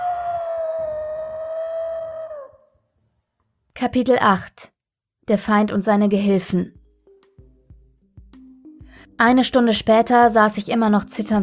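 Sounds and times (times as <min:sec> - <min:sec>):
distant hateful scream of water horse: 0:00.0 - 0:02.9
speech: 0:03.8 - 0:04.7, 0:05.3 - 0:06.8, 0:09.2 - 0:11.4.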